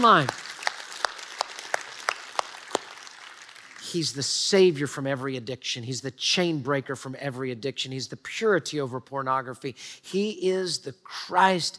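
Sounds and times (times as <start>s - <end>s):
speech: 0.0s - 0.4s, 3.9s - 11.7s
audience cheering and applauding: 0.0s - 4.2s.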